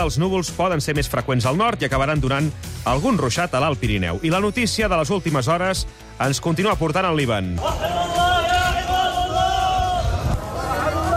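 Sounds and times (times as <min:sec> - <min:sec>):
speech: 0:00.0 - 0:08.2
continuous crowd babble at a funeral in Lebanon: 0:07.6 - 0:11.1
loud sustained chanting voice at a funeral in Lebanon: 0:07.6 - 0:11.1.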